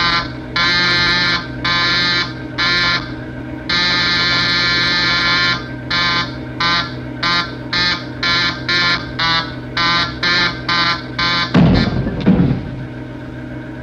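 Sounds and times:
buzzer pressed repeatedly: 0.0 - 12.7.

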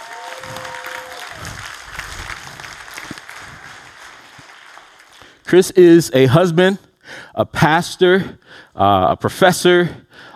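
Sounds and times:
audience applauding: 0.0 - 5.5
speech: 5.5 - 10.3.

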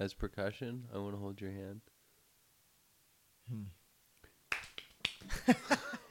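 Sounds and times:
speech: 0.0 - 2.0, 3.5 - 3.8, 5.2 - 5.9
person humming: 3.5 - 3.8
flutter of hand claps: 4.5 - 5.6.

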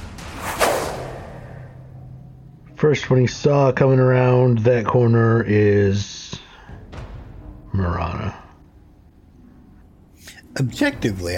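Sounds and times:
javelin thrown in a video game whoosh: 0.0 - 2.5
speech: 2.8 - 6.2, 7.8 - 8.4, 10.6 - 11.3.

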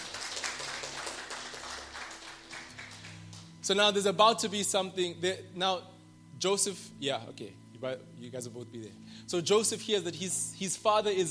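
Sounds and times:
people clapping hands: 0.0 - 3.6
speech: 3.7 - 11.3.

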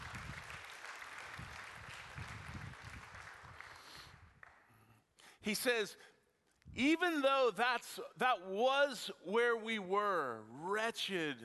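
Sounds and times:
audience clapping: 0.0 - 5.0
speech: 5.4 - 6.1, 6.8 - 11.4.

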